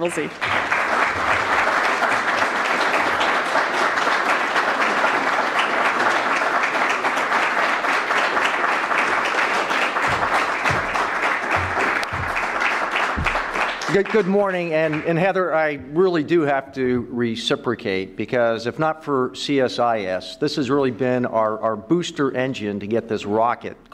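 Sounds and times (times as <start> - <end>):
speech: 0.0 - 1.5, 14.0 - 23.9
sustained audience applause: 0.0 - 15.2.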